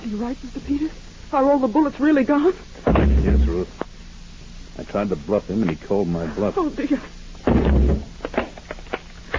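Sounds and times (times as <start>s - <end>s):
speech: 0.1s - 3.9s, 4.8s - 7.7s
door cracking: 2.8s - 3.6s, 7.4s - 9.3s.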